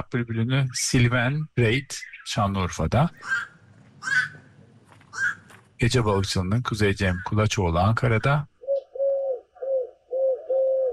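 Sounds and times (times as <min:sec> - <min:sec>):
speech: 0:00.0 - 0:04.4, 0:05.8 - 0:08.5
Eurasian collared dove cooing in Istanbul: 0:03.2 - 0:05.5, 0:08.6 - 0:10.9.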